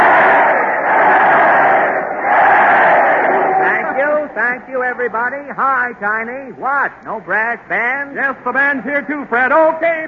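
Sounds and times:
crowd giving three cheers: 0.0 - 4.7
speech: 4.6 - 10.0.

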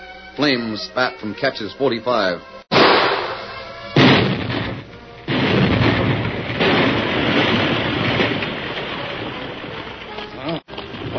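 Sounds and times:
speech: 0.4 - 2.6
blasting powder shed explosion: 4.0 - 9.9.

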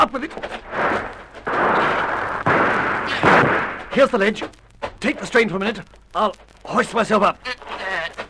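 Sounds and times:
speech: 0.0 - 0.6, 4.0 - 7.8
gunfire from the trees in a radio drama: 0.6 - 4.5.

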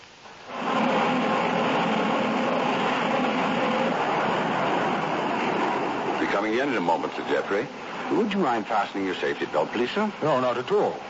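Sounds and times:
transoceanic airplane preparing to land on an East African airfield: 0.5 - 10.3
speech: 6.6 - 11.0.

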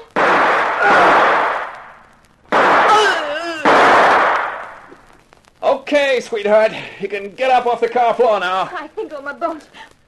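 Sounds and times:
gunshots from a .38 pistol: 0.0 - 4.9
speech: 5.9 - 9.9.

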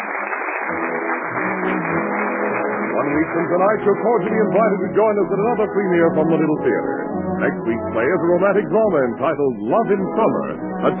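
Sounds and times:
theater audience applause ovation: 0.0 - 5.9
speech: 3.0 - 10.9.

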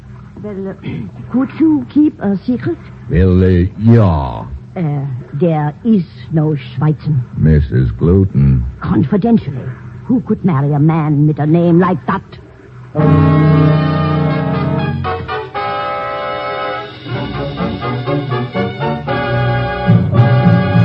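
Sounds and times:
speech: 0.4 - 13.8
broadcast chimes as organ-like chords: 13.0 - 20.7.

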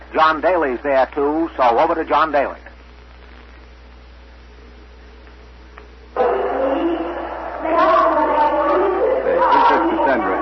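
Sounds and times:
speech: 0.1 - 2.6
large crowd gathering in market square: 6.2 - 10.3.

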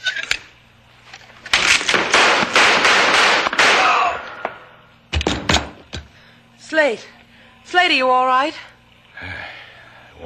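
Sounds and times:
gunshots: 1.8 - 4.6
speech: 6.8 - 8.7.

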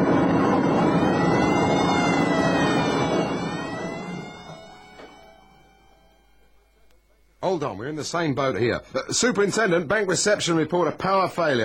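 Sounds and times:
alarms sounding: 0.0 - 8.4
speech: 7.5 - 11.6.

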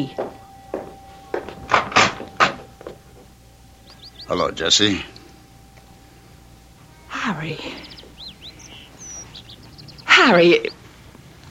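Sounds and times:
speech: 0.0 - 0.2, 4.3 - 5.2, 7.3 - 7.9, 10.2 - 10.8
front door being opened: 1.6 - 2.7.

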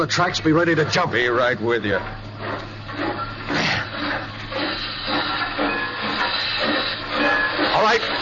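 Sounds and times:
speech: 0.0 - 3.8
steam locomotive hissing steam: 2.4 - 8.2.

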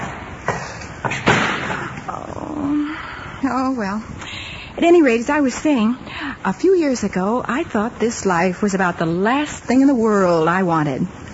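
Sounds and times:
door slamming: 1.0 - 2.0
speech: 3.4 - 4.2, 4.8 - 11.2.

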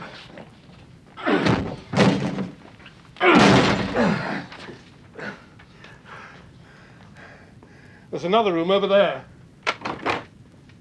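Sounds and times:
locked door being forced open: 1.3 - 2.6, 3.3 - 4.2, 9.7 - 10.3
speech: 8.2 - 9.3.

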